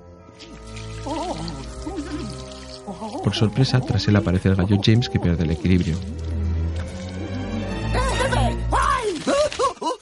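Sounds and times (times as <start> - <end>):
horse urinating: 0.3 - 10.0
speech: 0.4 - 6.4.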